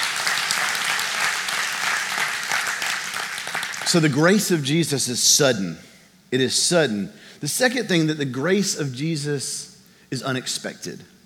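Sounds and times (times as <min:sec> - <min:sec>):
audience clapping: 0:00.0 - 0:04.4
speech: 0:03.9 - 0:11.1.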